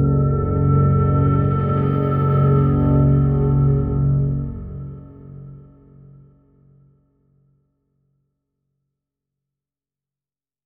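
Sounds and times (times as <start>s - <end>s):
fearful ambient music: 0.0s - 6.8s.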